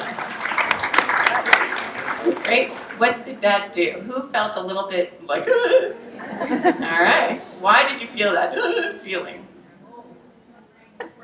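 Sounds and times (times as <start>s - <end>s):
audience applause: 0.0s - 3.1s
laughter: 1.2s - 2.5s, 5.5s - 7.4s
speech: 2.5s - 9.4s.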